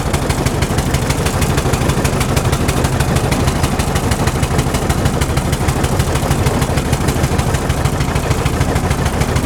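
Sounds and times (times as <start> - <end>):
traction engine starting up and moving: 0.0 - 9.4.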